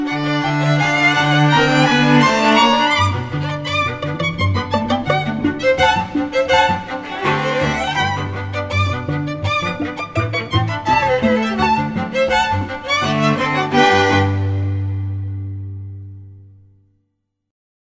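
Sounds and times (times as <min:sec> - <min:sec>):
pizzicato polka: 0:00.0 - 0:16.0.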